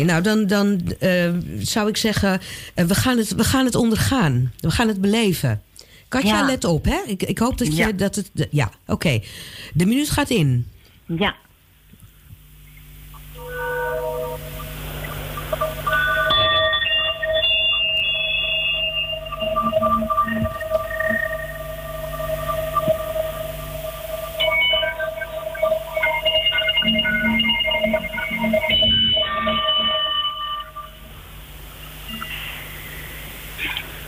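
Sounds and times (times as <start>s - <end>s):
speech: 0.0s - 11.4s
singing bowls ringing: 13.4s - 31.2s.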